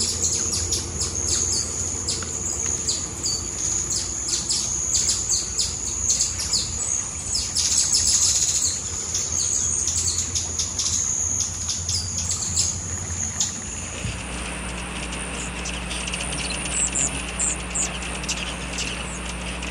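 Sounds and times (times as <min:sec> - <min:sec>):
hummingbird chirps and calls: 0:00.0 - 0:19.6.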